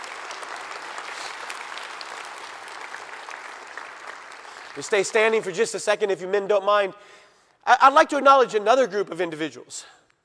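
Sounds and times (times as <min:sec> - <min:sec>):
audience round of applause: 0:00.0 - 0:05.5
speech: 0:04.8 - 0:10.0.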